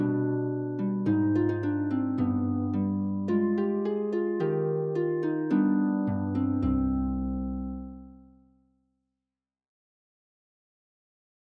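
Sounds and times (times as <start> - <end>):
Bulgarian style folk music: 0.0 - 8.2.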